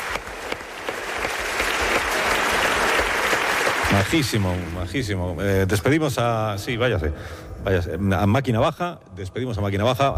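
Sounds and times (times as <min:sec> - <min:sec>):
audience applause: 0:00.0 - 0:05.2
speech: 0:03.9 - 0:10.1.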